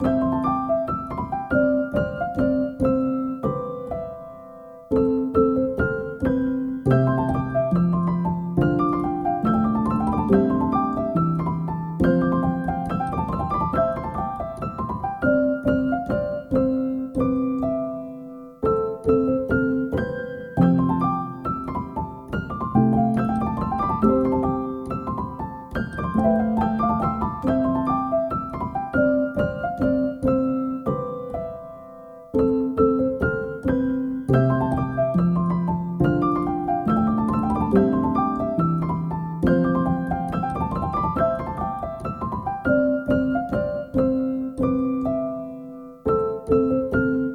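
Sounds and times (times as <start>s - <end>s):
piano: 0.0s - 47.3s.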